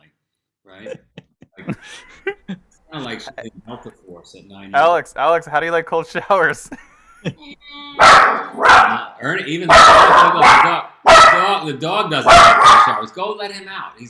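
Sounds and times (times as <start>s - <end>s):
speech: 0.7s - 1.2s, 1.9s - 14.0s
laughter: 0.8s - 3.4s, 6.4s - 7.7s
dog barking: 8.0s - 9.1s, 9.7s - 11.6s, 12.2s - 13.1s.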